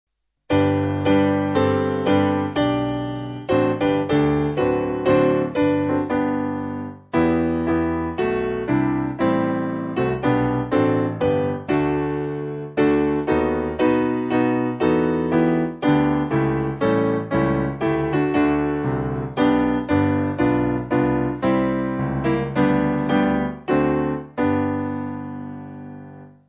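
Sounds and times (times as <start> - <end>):
church music piano backing: 0.5 - 26.4.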